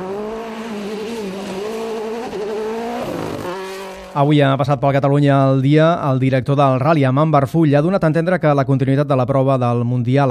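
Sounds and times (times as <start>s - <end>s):
rally car engine racing at the Rally Catalunya: 0.0s - 4.2s
speech: 4.2s - 10.2s.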